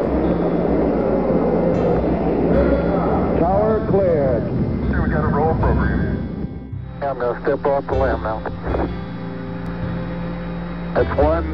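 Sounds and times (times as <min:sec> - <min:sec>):
Saturn V rocket liftoff roar: 0:00.0 - 0:11.3
speech: 0:07.1 - 0:09.0, 0:11.0 - 0:11.5.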